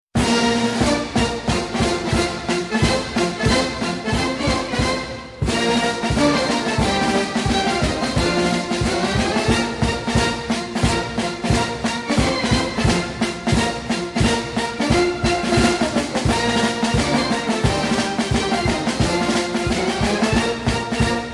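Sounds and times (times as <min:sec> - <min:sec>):
military fanfare: 0:00.2 - 0:21.3.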